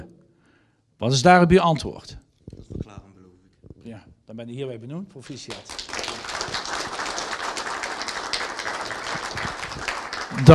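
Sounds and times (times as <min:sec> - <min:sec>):
speech: 0:01.0 - 0:02.2, 0:03.9 - 0:06.0, 0:10.3 - 0:10.5
applause: 0:05.2 - 0:10.5.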